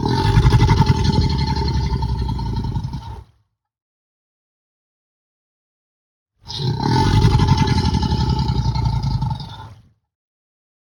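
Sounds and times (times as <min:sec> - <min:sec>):
crocodile dinosaur bellowing growl: 0:00.0 - 0:03.3, 0:06.5 - 0:09.9.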